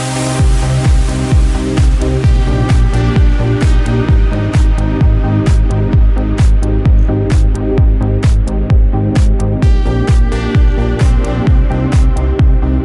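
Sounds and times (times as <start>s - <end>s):
bass music: 0.0s - 12.8s.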